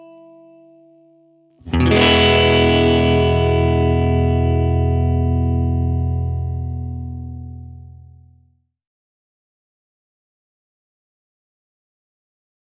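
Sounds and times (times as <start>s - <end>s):
guitar tuning notes: 0.0s - 8.3s.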